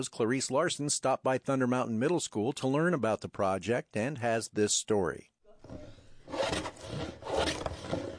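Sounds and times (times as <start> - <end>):
speech: 0.0 - 5.8
filing wooden paddles: 6.2 - 8.1
sanding wooden paddles: 6.3 - 8.1.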